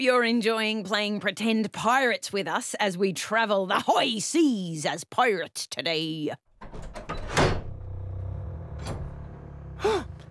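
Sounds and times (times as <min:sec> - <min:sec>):
speech: 0:00.0 - 0:06.8
sharp knocks and clunks: 0:06.5 - 0:10.3
latch clicking open: 0:06.6 - 0:10.3
low steady hum: 0:06.6 - 0:10.3.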